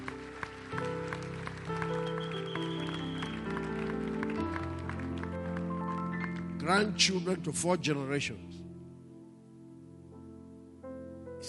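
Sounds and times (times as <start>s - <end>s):
audience clapping along in a steady rhythm: 0.0s - 7.2s
sustained organ or keyboard chords: 0.0s - 7.6s
speech: 6.7s - 8.6s.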